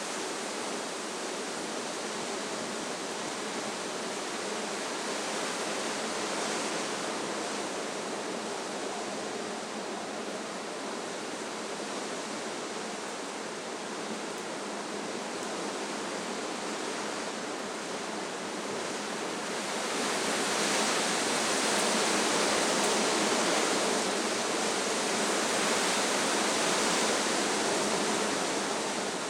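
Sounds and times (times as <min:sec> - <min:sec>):
wind in trees: 0:00.0 - 0:29.2.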